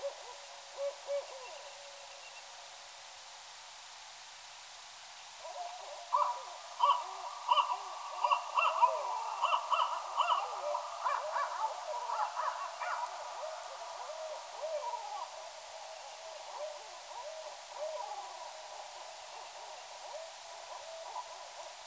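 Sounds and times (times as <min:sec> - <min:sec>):
barred owl hooting and cackling: 0:00.0 - 0:02.3, 0:05.4 - 0:21.7
faint steady hiss: 0:00.0 - 0:21.8.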